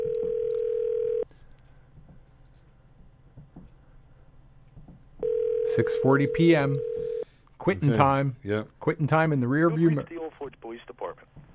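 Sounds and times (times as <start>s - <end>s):
electronic ringback tone on a call to the Old Forge Police Department: 0.0s - 1.2s, 5.2s - 7.2s
speech: 5.8s - 7.0s, 7.6s - 10.2s.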